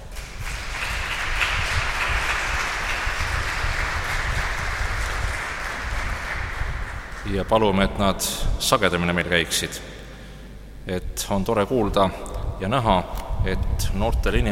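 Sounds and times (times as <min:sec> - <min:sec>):
audience applause: 0:00.0 - 0:07.4
speech: 0:07.3 - 0:10.0, 0:10.9 - 0:14.5.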